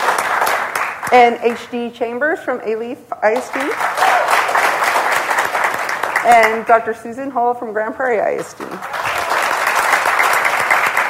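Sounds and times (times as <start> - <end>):
audience applause: 0.0 - 1.1, 3.6 - 6.6, 8.8 - 11.0
speech: 1.1 - 4.2, 6.2 - 8.9.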